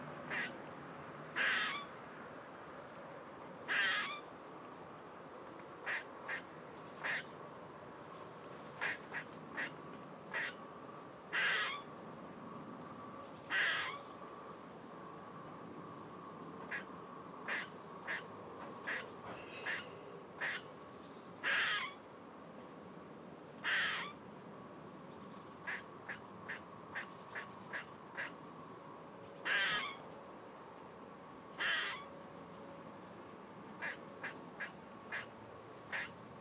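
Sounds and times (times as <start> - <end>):
grey squirrel calling: 0.3 - 0.6, 1.4 - 1.9, 3.6 - 5.0, 5.8 - 7.4, 8.8 - 10.7, 11.3 - 12.2, 13.3 - 14.1, 16.7 - 20.8, 21.4 - 22.0, 23.6 - 24.2, 25.6 - 28.4, 29.3 - 30.0, 31.5 - 32.1, 33.8 - 36.2.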